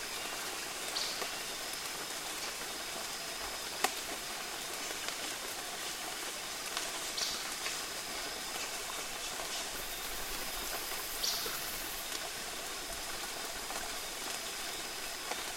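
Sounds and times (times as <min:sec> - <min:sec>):
rain in Costa Rica: 0:00.0 - 0:15.5
birds in Costa Rica: 0:09.4 - 0:12.0.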